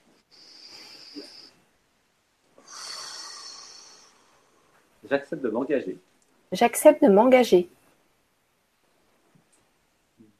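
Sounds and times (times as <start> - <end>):
long airy breaths: 0.2 - 1.7, 2.6 - 4.9
speech: 5.1 - 7.8.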